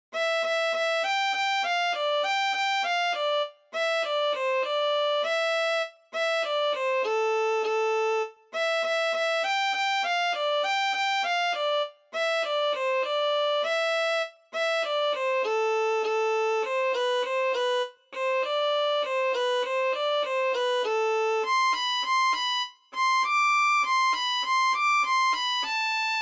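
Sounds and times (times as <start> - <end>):
violin: 0.2 - 26.2.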